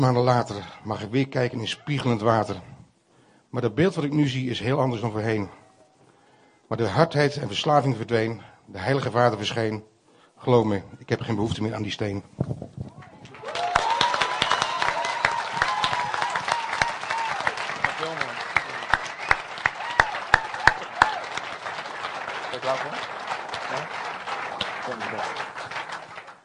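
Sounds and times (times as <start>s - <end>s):
speech: 0.0s - 2.8s, 3.5s - 5.6s, 6.7s - 12.8s
audience applause: 13.2s - 26.4s.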